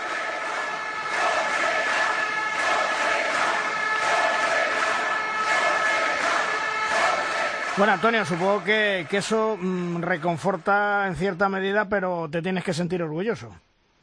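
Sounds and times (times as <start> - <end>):
handball fans chanting a name in arena: 0.0 - 9.4
speech: 7.8 - 13.6.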